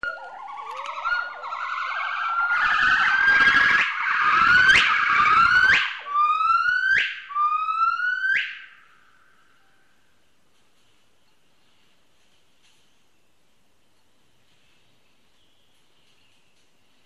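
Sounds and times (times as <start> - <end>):
Hainan gibbon song: 0.0 - 8.7.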